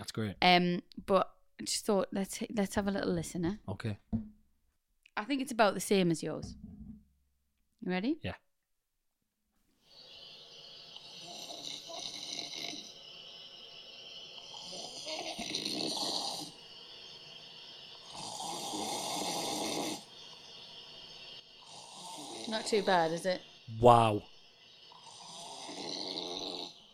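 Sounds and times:
speech: 0:00.2 - 0:04.4, 0:05.2 - 0:06.7, 0:07.8 - 0:08.4, 0:22.6 - 0:24.3
man snoring: 0:10.9 - 0:13.2, 0:14.2 - 0:17.1, 0:17.9 - 0:20.6, 0:21.3 - 0:23.0, 0:24.8 - 0:26.9.

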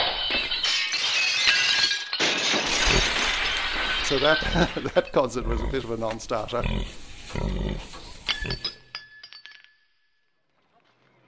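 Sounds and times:
glasses knocked over and shattering: 0:00.0 - 0:05.4, 0:08.2 - 0:10.2
speech: 0:04.1 - 0:08.6.

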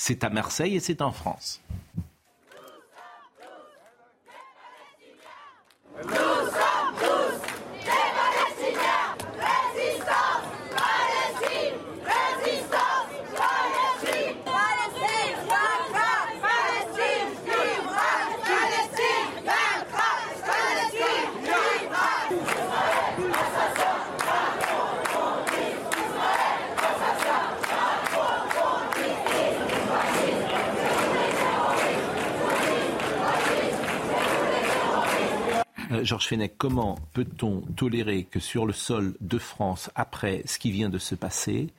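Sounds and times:
speech: 0:00.0 - 0:01.8, 0:36.0 - 0:41.7
protest crowd chanting slogans in Marseille: 0:02.4 - 0:35.7.

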